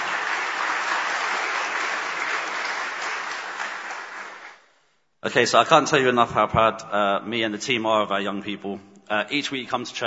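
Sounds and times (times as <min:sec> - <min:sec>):
round of applause: 0:00.0 - 0:04.7
speech: 0:05.2 - 0:10.0.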